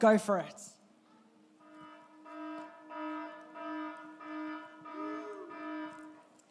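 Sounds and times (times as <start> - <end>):
phone alarm ringtone: 1.7 - 6.2.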